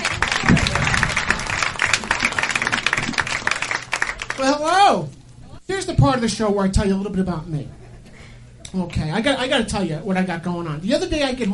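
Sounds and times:
faint voice or cheer: 0:00.0 - 0:04.4
crowd applauding: 0:00.0 - 0:04.7
speech: 0:04.4 - 0:07.8, 0:08.7 - 0:11.5.

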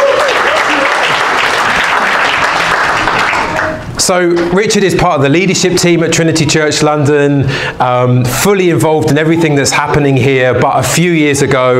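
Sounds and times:
audience applause: 0:00.0 - 0:03.8
speech: 0:04.1 - 0:11.7.

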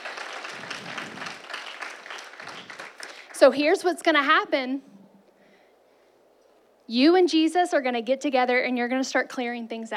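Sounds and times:
audience clapping hands: 0:00.0 - 0:03.5
speech: 0:03.4 - 0:04.9, 0:06.9 - 0:09.9.

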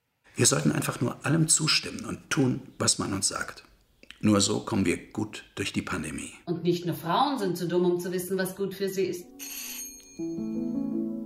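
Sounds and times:
speech: 0:00.4 - 0:11.0
doorbell ringing: 0:09.3 - 0:10.9.

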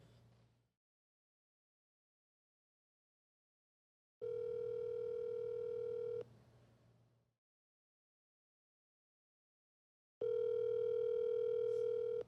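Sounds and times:
telephone tones of an outgoing call: 0:04.2 - 0:06.2, 0:10.2 - 0:12.2.

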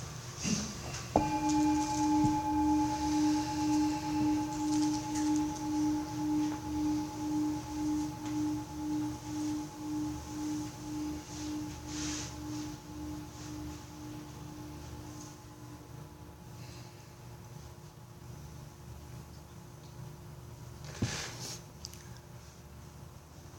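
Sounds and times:
meditation bell ringing: 0:01.2 - 0:18.0.

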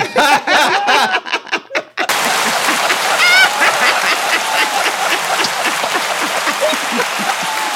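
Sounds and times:
laughter: 0:00.0 - 0:07.7
person clapping hands: 0:02.1 - 0:07.7.

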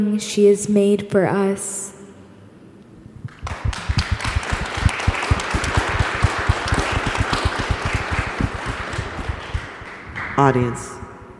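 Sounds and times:
speech: 0:00.0 - 0:02.0, 0:10.4 - 0:11.0
audience applause: 0:03.4 - 0:10.5.

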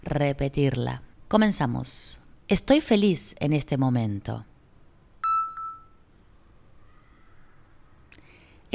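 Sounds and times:
speech: 0:00.1 - 0:04.5
electronic beep signal tones: 0:05.2 - 0:06.0.

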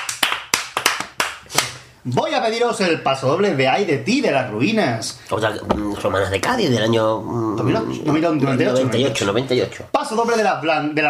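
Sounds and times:
people applauding: 0:00.0 - 0:01.4
speech: 0:02.0 - 0:11.0.

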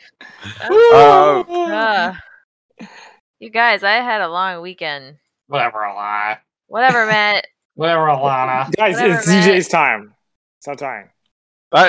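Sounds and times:
speech: 0:00.1 - 0:02.2, 0:02.8 - 0:11.1
loud, drawn-out voiced yawn: 0:00.4 - 0:01.6.

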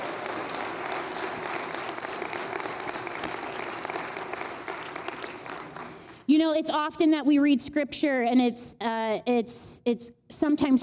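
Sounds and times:
audience applause: 0:00.0 - 0:06.2
speech: 0:06.3 - 0:10.8.

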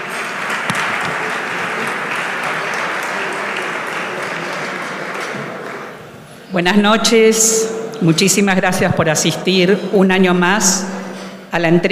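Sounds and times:
audience applause: 0:00.0 - 0:06.1
speech: 0:06.6 - 0:11.9.

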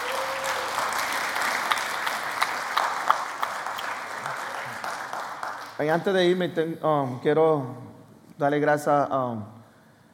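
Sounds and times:
audience applauding: 0:00.0 - 0:06.0
speech: 0:05.8 - 0:09.6.

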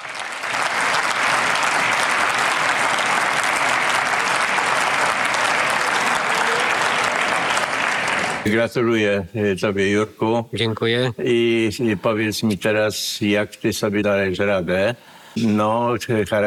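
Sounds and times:
audience applause: 0:00.0 - 0:08.5
speech: 0:08.4 - 0:16.4.

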